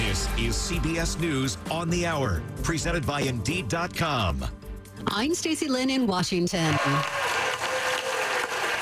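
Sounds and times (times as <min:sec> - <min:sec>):
speech: 0:00.1 - 0:07.2
applause on the Senate floor: 0:06.7 - 0:08.8.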